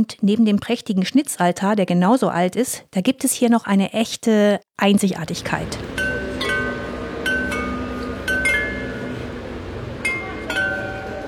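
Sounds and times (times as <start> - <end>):
speech: 0.0 - 6.0
Meissen porcelain church bells ringing: 5.3 - 11.2.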